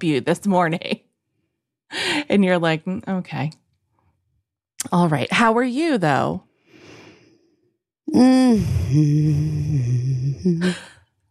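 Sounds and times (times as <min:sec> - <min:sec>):
speech: 0:00.0 - 0:01.0, 0:01.9 - 0:03.6, 0:04.8 - 0:06.5, 0:08.1 - 0:10.9
person humming as vocal stimming: 0:08.1 - 0:11.0.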